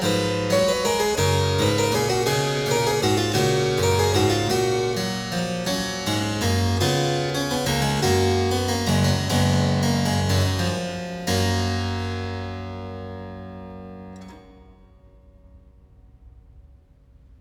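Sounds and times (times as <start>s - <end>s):
canon at the octave for one keyboard: 0.0s - 12.5s.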